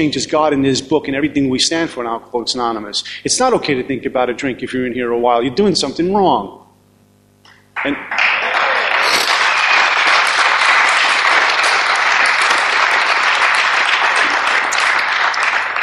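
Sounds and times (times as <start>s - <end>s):
speech: 0.0s - 6.6s, 7.8s - 8.4s
audience applause at an Alcoholics Anonymous meeting: 7.8s - 15.8s.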